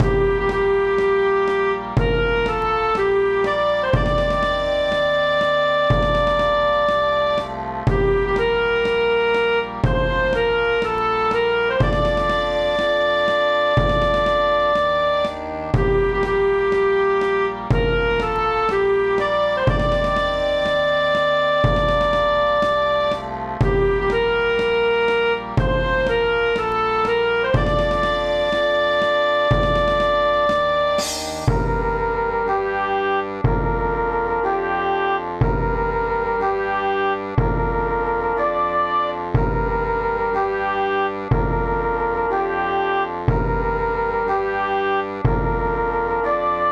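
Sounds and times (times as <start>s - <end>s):
marching: 0.0s - 46.6s.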